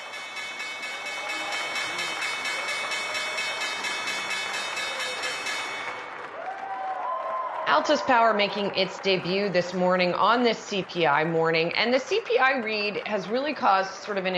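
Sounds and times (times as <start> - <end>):
stock exchange opening bell ringing: 0.0 - 6.2
crowd noise: 0.0 - 14.3
applause: 1.4 - 14.3
speech: 7.7 - 14.3.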